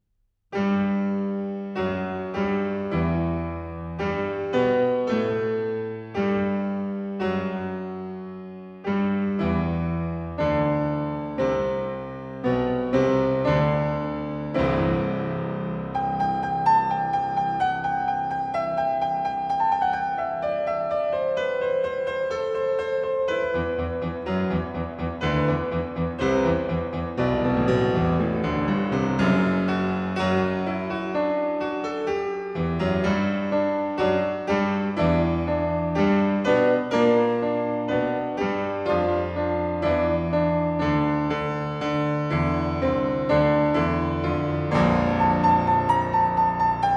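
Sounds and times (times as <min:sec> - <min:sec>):
piano prelude in G major: 0:00.5 - 0:46.9.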